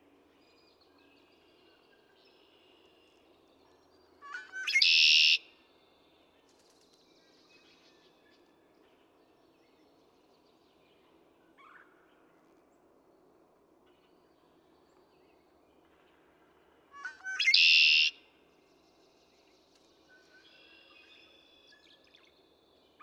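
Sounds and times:
Red-winged Blackbird singing a stutter into a raspy trill: 17.0s - 18.2s.

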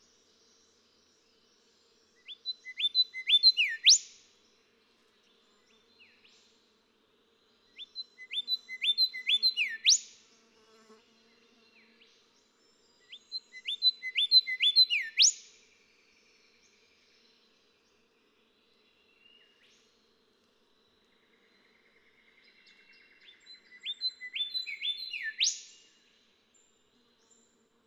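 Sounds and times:
golden whistler song: 2.2s - 4.2s, 7.8s - 10.2s, 13.1s - 15.5s, 22.5s - 25.8s.

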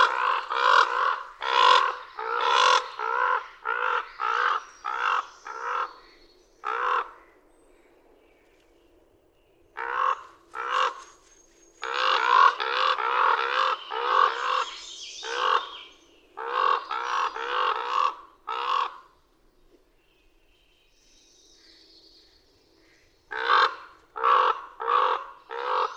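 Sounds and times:
Common raven hoarse croaks: 0.0s - 7.3s, 9.8s - 11.0s, 11.8s - 15.8s, 16.4s - 19.1s, 23.3s - 25.9s.

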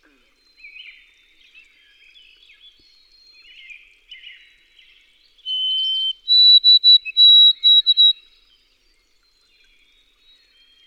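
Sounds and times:
White-throated sparrow whistled song: 5.4s - 8.2s.

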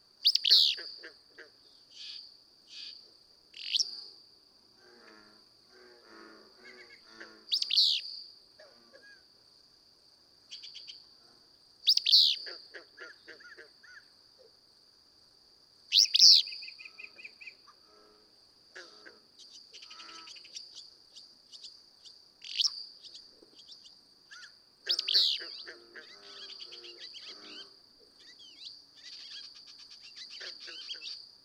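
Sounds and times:
steady high-pitched insect buzz: 0.0s - 31.4s
willow flycatcher song: 0.2s - 1.1s, 1.8s - 4.2s, 4.9s - 9.2s, 11.8s - 14.1s, 15.9s - 18.2s, 18.8s - 31.4s.

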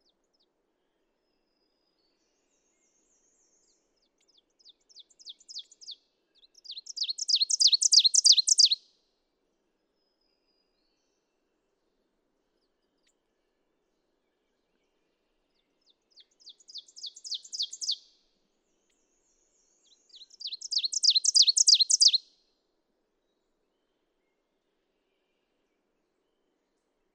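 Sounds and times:
ovenbird singing: 2.1s - 8.8s, 14.3s - 18.1s, 18.8s - 22.3s.

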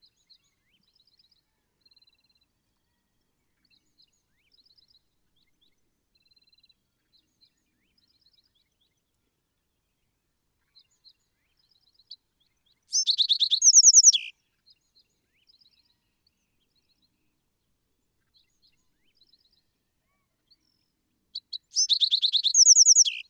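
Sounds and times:
Bewick's Wren: 21.8s - 23.2s.

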